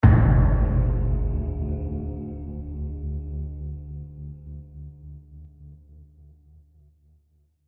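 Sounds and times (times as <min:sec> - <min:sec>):
tense match over music: 0:00.0 - 0:05.5.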